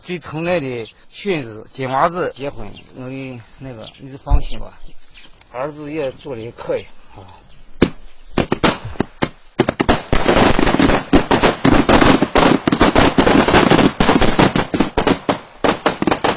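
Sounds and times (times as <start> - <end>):
speech: 0.1 - 7.4
ceremonial firecrackers exploding: 7.8 - 16.3.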